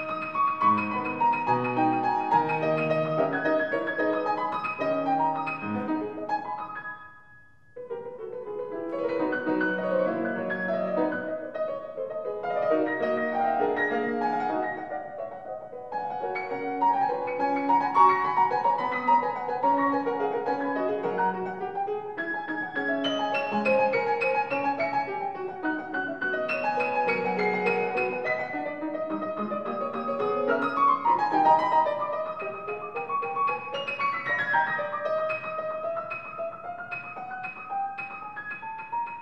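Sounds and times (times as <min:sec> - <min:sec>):
piano: 0:00.0 - 0:39.2.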